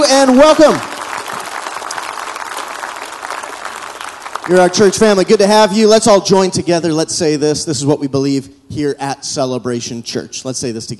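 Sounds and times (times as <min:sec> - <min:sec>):
congregation applauding in church: 0:00.0 - 0:06.1
speech: 0:00.1 - 0:00.9, 0:04.5 - 0:10.9.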